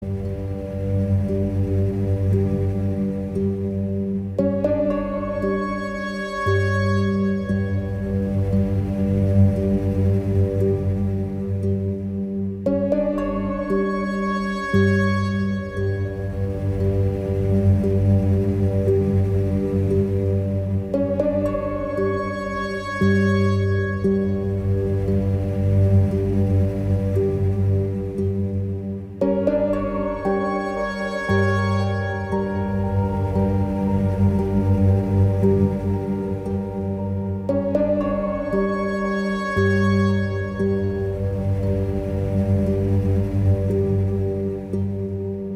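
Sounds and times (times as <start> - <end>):
electronic music: 0.0 - 45.5.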